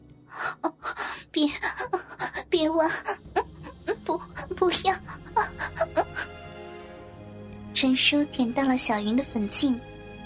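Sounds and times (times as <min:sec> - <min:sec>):
speech: 0:00.3 - 0:01.8, 0:02.6 - 0:03.3, 0:07.8 - 0:09.9
woman gasping and moaning: 0:00.3 - 0:06.4.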